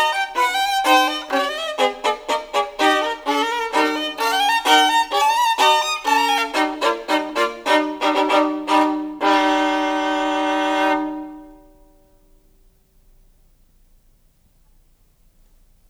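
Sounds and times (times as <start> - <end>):
solo violin caprice in E flat major: 0.0 - 11.9.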